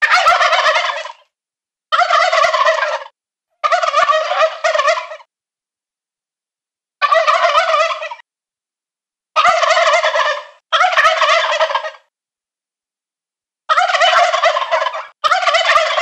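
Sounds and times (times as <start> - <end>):
male turkeys gobbling: 0.0 - 1.3, 1.9 - 5.3, 7.0 - 8.2, 9.4 - 12.1, 13.7 - 16.0.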